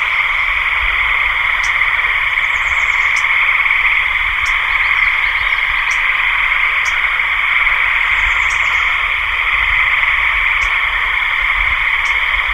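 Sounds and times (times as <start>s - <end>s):
frogs calling in a dense droning chorus: 0.0s - 12.5s.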